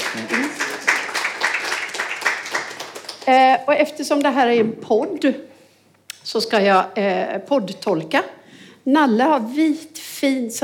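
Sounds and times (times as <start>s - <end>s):
warm applause: 0.0s - 3.4s
speech: 3.3s - 5.5s, 6.3s - 10.6s.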